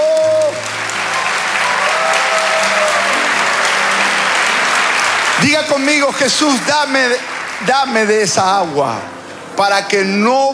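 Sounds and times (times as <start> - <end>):
large crowd clapping: 0.0 - 10.1
faint sustained musical tones: 0.6 - 10.4
speech: 5.4 - 10.5.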